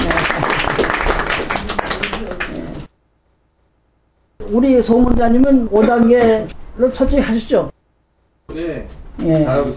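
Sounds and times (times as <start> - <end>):
audience applause in welcome: 0.0 - 2.8
speech: 4.5 - 7.8, 8.5 - 9.7.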